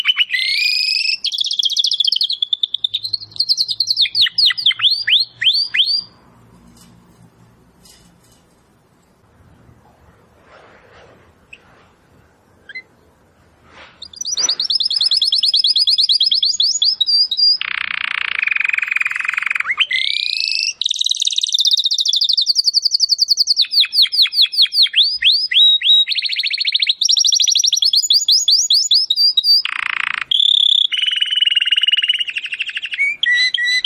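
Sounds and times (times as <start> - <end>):
domestic canary singing: 0.0 - 6.3, 12.6 - 13.1, 14.0 - 33.8
faint rustling: 6.3 - 14.7.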